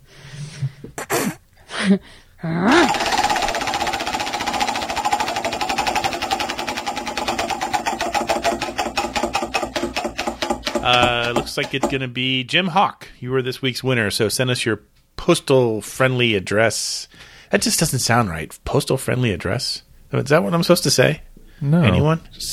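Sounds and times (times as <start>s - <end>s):
speech: 1.8s - 3.1s, 10.8s - 22.5s
short vocal bursts: 2.4s - 4.3s
prize wheel spinning and clicking: 2.8s - 12.0s.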